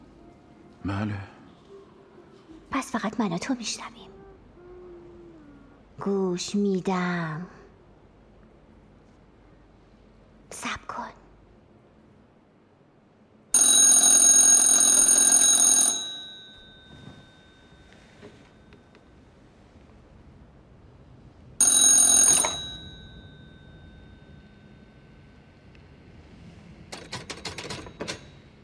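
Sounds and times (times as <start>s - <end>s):
speech: 0.8s - 1.4s, 2.7s - 4.1s, 6.0s - 7.6s
telephone ringing: 13.5s - 18.8s, 21.6s - 25.2s, 26.9s - 28.6s.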